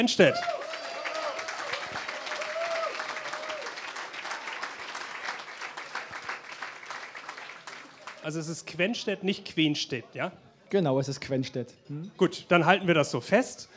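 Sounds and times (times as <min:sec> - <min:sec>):
speech: 0:00.0 - 0:00.6, 0:08.2 - 0:13.7
indoor audience applause in a VIP room: 0:00.2 - 0:08.4.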